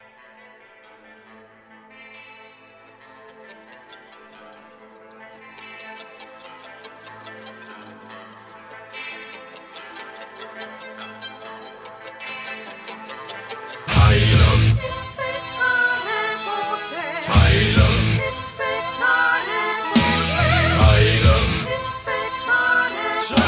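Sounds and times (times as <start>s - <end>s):
metal opera music: 13.8s - 23.4s.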